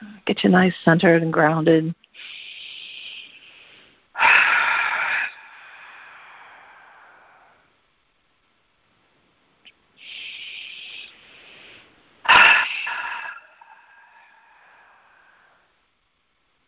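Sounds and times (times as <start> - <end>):
speech: 0.3 - 2.4
long slow deep breaths for meditation: 2.1 - 7.9, 10.0 - 15.8.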